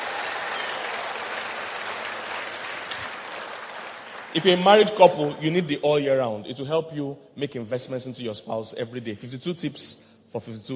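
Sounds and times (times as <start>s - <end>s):
crowd applause: 0.0s - 5.4s
speech: 4.3s - 10.7s.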